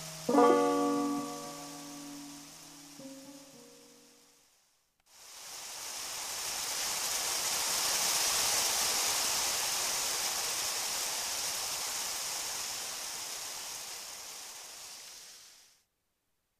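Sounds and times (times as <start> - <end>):
banjo: 0.0 - 2.2
guitar: 0.0 - 4.0
rain: 0.0 - 15.9.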